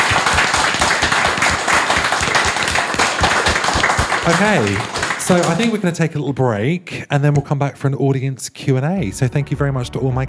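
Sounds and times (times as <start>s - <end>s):
audience applause: 0.0s - 5.9s
speech: 4.2s - 10.2s.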